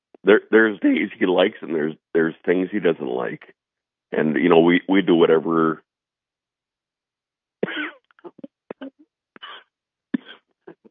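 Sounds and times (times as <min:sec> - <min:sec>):
speech: 0:00.2 - 0:05.8
man coughing: 0:07.6 - 0:09.6.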